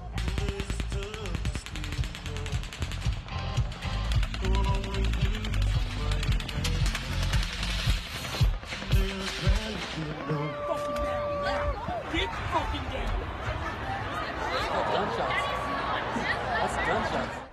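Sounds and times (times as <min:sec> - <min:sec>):
gunshots fired at festival: 0:00.1 - 0:10.5
laughter: 0:09.7 - 0:17.5.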